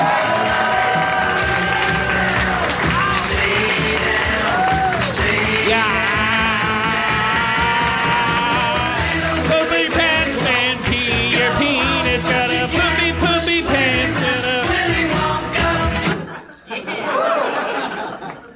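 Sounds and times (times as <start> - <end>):
crowd cheering: 0.0 - 10.5, 16.1 - 18.5
audience applause: 0.0 - 10.7
loud song playing for a host's stage entrance: 0.0 - 16.3
audience laughter: 16.0 - 18.5.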